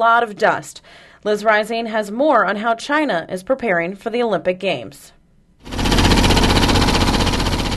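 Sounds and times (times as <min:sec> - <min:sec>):
speech: 0:00.0 - 0:05.2
construction machinery rapid mechanical hammering: 0:05.6 - 0:07.7.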